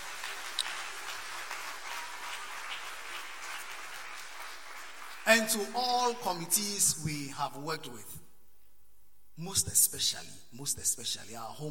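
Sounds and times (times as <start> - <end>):
audience applause: 0.0 - 5.3
speech: 5.3 - 8.3, 9.4 - 11.6.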